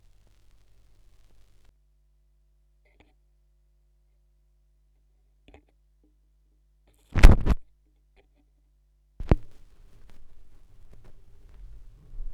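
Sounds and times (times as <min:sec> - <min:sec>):
vinyl record noise: 0:00.0 - 0:01.7, 0:07.2 - 0:07.6, 0:09.2 - 0:12.3.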